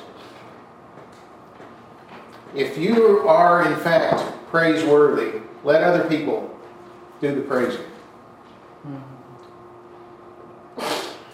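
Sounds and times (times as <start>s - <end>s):
quiet hum: 0.0s - 11.3s
speech: 2.5s - 6.5s, 7.2s - 7.9s
brief low voiced sound: 8.8s - 9.5s
sneeze: 10.8s - 11.3s.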